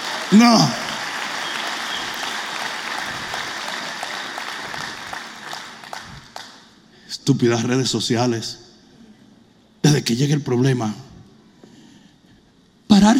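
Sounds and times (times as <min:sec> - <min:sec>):
crowd applause: 0:00.0 - 0:06.7
speech: 0:00.3 - 0:00.8, 0:07.3 - 0:08.6, 0:10.1 - 0:11.0.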